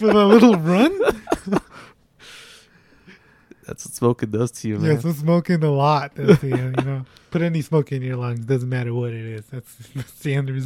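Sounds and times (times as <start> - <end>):
speech: 0.0 - 1.6, 3.7 - 10.6
laughter: 0.0 - 1.9, 6.2 - 7.0
labored wheezing breathing: 1.6 - 3.6.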